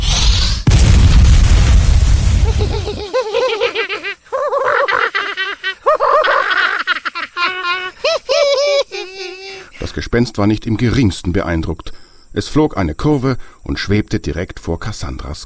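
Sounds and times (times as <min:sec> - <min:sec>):
fireball blast: 0:00.0 - 0:03.1
laughter: 0:02.4 - 0:09.8
speech: 0:10.1 - 0:15.4.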